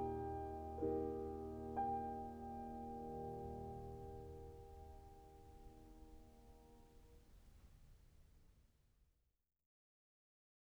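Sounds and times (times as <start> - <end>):
short pieces for piano: 0.0 - 7.0.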